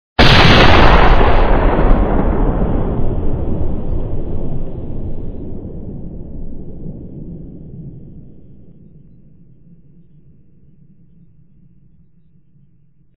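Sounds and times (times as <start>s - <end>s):
gunshot: 0.2s - 7.6s.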